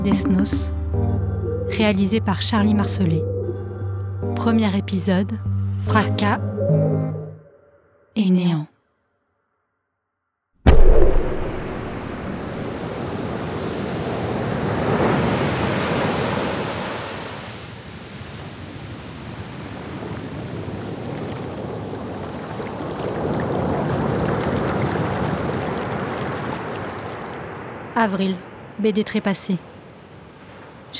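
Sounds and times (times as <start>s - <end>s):
speech: 0.0s - 3.4s, 4.2s - 7.2s, 8.2s - 8.7s, 28.0s - 29.7s
ocean waves between sea cliffs: 10.7s - 30.9s.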